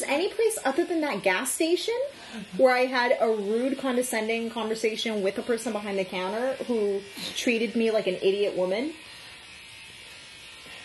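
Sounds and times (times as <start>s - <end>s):
chainsaw-like buzzing drone: 0.0s - 10.8s
speech: 0.1s - 9.1s.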